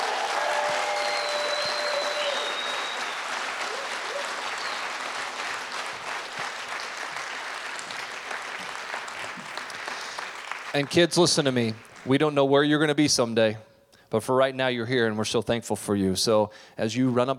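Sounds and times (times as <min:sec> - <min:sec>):
audience cheering and applauding: 0:00.0 - 0:12.1
whistles: 0:00.6 - 0:05.0
speech: 0:10.8 - 0:17.3.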